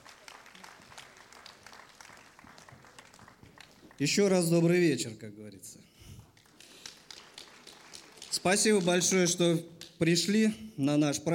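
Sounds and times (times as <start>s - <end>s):
crowd clapping enthusiastically: 0.0s - 4.8s, 6.2s - 10.2s
speech: 4.0s - 6.0s, 8.4s - 11.3s.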